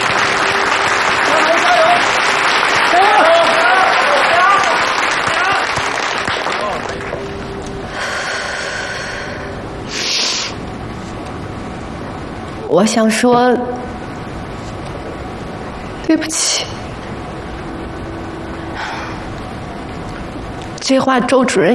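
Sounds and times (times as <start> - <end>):
audience applause: 0.0 - 8.4
speech: 12.7 - 13.9, 16.1 - 16.8, 20.9 - 21.7.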